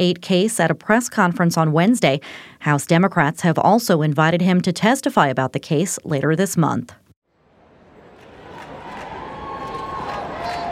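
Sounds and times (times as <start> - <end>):
speech: 0.0 - 7.0
fans cheering the U.S. women's soccer team at a New York City parade: 7.4 - 10.7.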